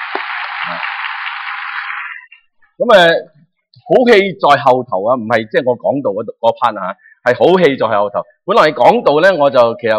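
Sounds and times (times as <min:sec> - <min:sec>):
church congregation clapping in thanks to God during worship: 0:00.0 - 0:02.4
speech: 0:00.6 - 0:00.9, 0:02.8 - 0:03.3, 0:03.9 - 0:09.9.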